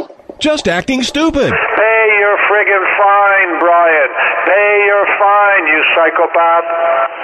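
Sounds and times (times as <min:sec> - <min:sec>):
Russian Woodpecker radio signal: 0:00.4 - 0:02.0
speech: 0:00.5 - 0:07.1.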